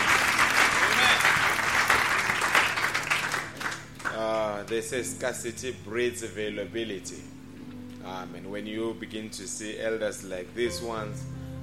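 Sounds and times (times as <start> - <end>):
audience applause: 0.0 - 4.5
speech: 4.7 - 7.4, 8.1 - 11.4.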